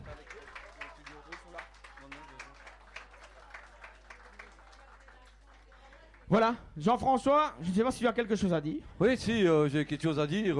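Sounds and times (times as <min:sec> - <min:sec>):
audience applause: 0:00.0 - 0:06.4
speech: 0:06.3 - 0:10.5.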